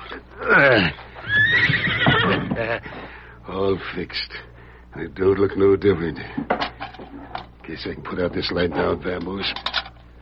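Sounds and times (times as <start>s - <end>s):
speech: 0.1s - 1.8s, 2.6s - 9.8s
horse whinnying: 0.5s - 2.6s.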